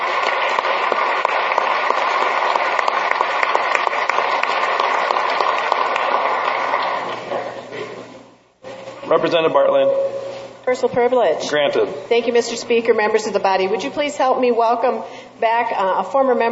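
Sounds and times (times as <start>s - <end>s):
legislators clapping in a South Dakota legislative chamber: 0.0s - 7.6s
speech: 9.1s - 16.5s.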